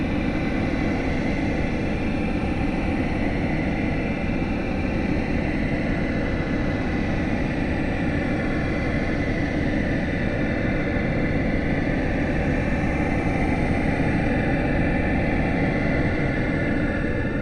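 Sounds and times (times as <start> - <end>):
long drone created through manipulation of raw material: 0.0 - 17.4.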